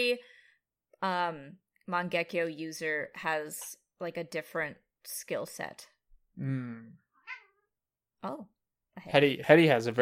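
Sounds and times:
speech: 0.0s - 0.4s, 1.0s - 7.0s, 8.2s - 9.9s
cat meowing: 7.2s - 7.7s.

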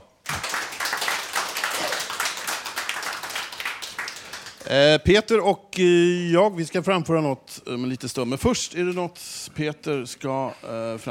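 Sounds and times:
audience applause: 0.2s - 4.6s
speech: 4.7s - 11.0s.

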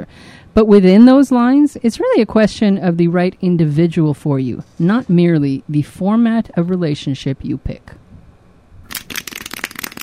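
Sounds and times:
speech: 0.1s - 8.0s
sharp clapping: 8.9s - 10.0s.

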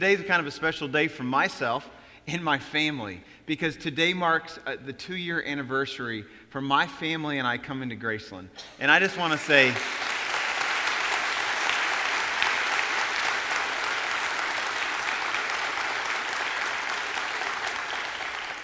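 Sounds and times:
speech: 0.0s - 10.1s
congregation applause at a church service: 9.0s - 18.6s.

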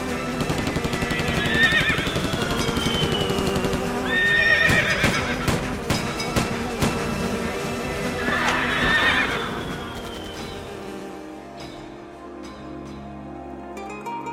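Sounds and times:
galloping hoofbeats: 0.1s - 11.0s
horse whinnying: 1.0s - 3.4s, 4.0s - 5.5s, 8.2s - 10.1s.

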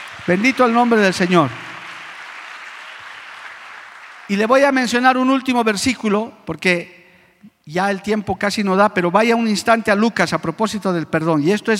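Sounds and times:
audience applause: 0.0s - 4.6s
speech: 0.2s - 1.6s, 4.3s - 11.7s.

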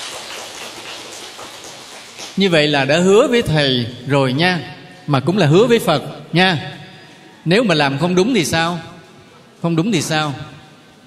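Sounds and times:
applause: 0.0s - 2.4s
speech: 2.4s - 6.8s, 7.4s - 8.9s, 9.6s - 10.5s.

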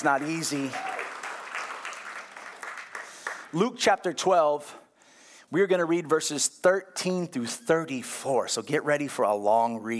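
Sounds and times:
speech: 0.0s - 0.9s, 3.5s - 4.8s, 5.5s - 9.9s
audience applause: 0.0s - 3.5s.

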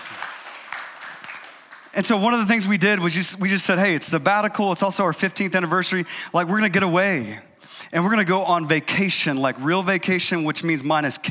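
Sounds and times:
audience clapping: 0.0s - 2.2s
speech: 2.0s - 11.2s.

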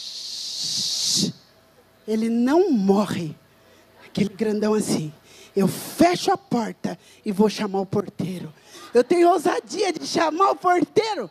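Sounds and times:
voice imitating an aerosol insecticide spray hiss: 0.0s - 1.4s
speech: 0.7s - 1.4s, 2.1s - 3.4s, 4.2s - 11.2s.

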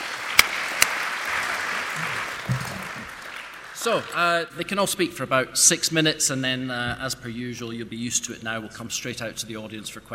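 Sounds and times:
audience applause at a panel event welcoming the speakers: 0.0s - 4.3s
speech: 3.8s - 10.1s.

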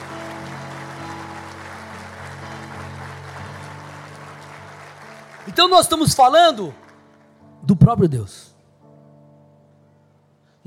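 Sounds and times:
crowd clapping: 0.0s - 7.5s
speech: 5.5s - 6.8s, 7.7s - 8.5s.

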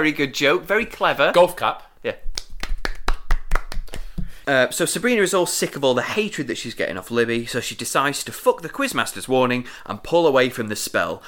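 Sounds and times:
speech: 0.0s - 2.2s, 4.5s - 11.2s
light round of applause: 2.3s - 4.4s.

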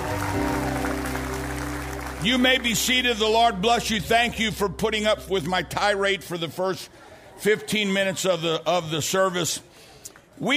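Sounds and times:
crowd applause: 0.0s - 4.1s
organ-like music tones: 0.0s - 6.2s
speech: 2.2s - 10.5s.

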